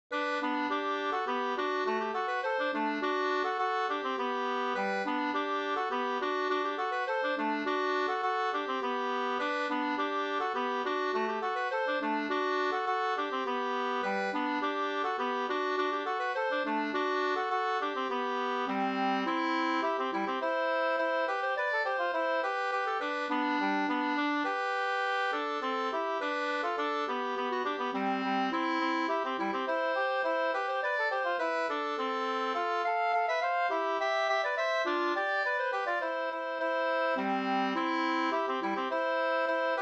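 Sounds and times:
polka music: 0:00.1 - 0:39.8.

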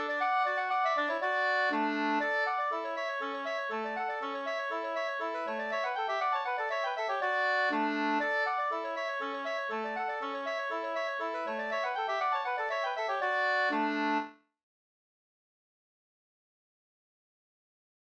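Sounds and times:
folk dance music: 0:00.0 - 0:14.2.

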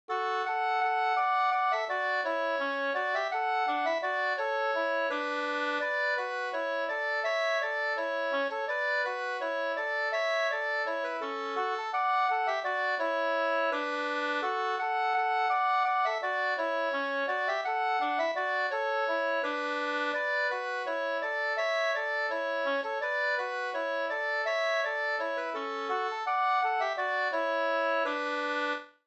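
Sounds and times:
folk song melody: 0:00.1 - 0:29.0.

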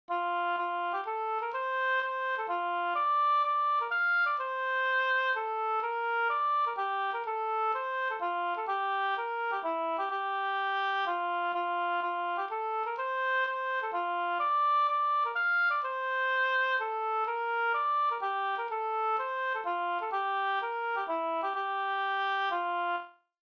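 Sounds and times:
polska dance tune: 0:00.1 - 0:23.0.

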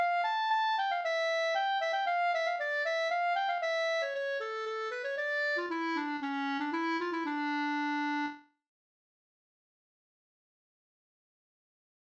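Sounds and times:
polska dance tune: 0:00.0 - 0:08.4.

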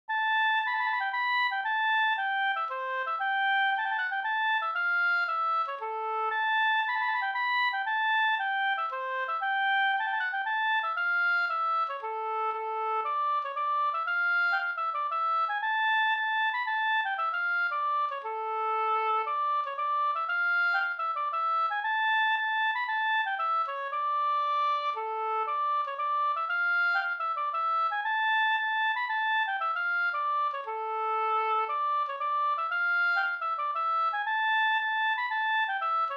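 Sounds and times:
polska folk dance tune: 0:00.1 - 0:36.1.

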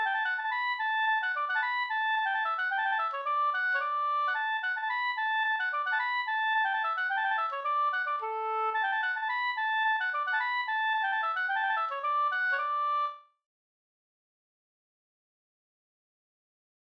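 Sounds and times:
polka music: 0:00.0 - 0:13.2.

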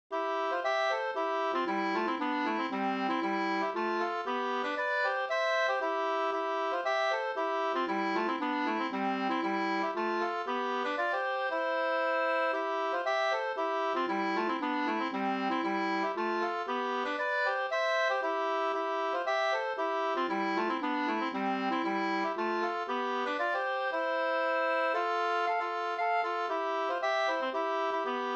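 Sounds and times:
two-part polska dance tune: 0:00.1 - 0:28.3.

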